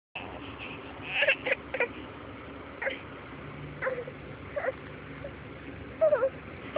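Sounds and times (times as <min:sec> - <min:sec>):
hungry baby boy: 0:00.2 - 0:02.0, 0:03.8 - 0:04.8.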